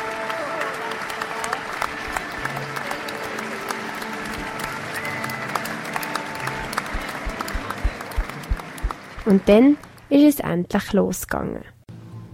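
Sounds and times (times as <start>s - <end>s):
scattered voices and cheers: 0.0s - 9.0s
thunderous concert audience applause: 0.0s - 10.1s
speech: 9.3s - 11.7s.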